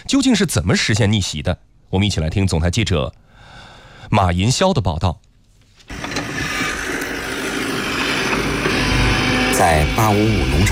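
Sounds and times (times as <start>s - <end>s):
speech: 0.1s - 3.3s, 4.1s - 5.2s, 9.6s - 10.6s
high-horsepower tractor pulling fertilizer seeder: 5.9s - 10.6s.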